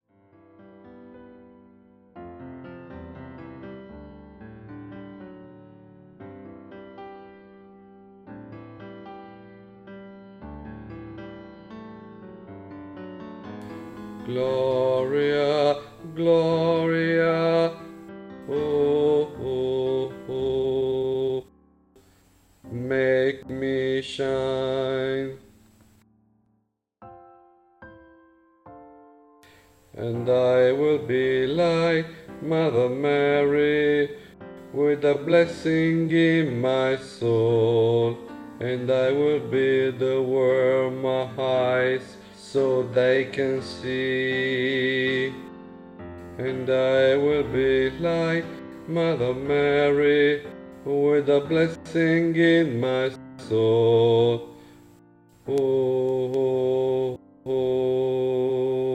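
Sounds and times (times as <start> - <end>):
christmas lullaby: 13.6 - 25.6, 29.4 - 58.9.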